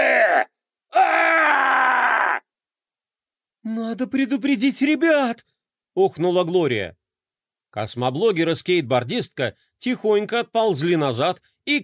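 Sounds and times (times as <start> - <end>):
menacing shout muffled through a cardboard box worn on the head: 0.0 - 2.4
speech: 3.7 - 7.0, 7.7 - 11.8.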